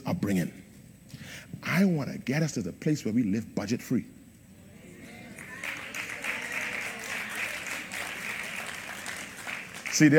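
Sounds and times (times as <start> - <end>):
speech: 0.2 - 0.6, 1.6 - 4.2, 10.0 - 10.1
audience clapping: 5.1 - 10.1.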